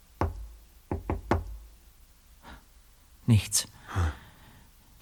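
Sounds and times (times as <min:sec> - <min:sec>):
knocking on a door: 0:00.2 - 0:01.7
speech: 0:03.3 - 0:04.2.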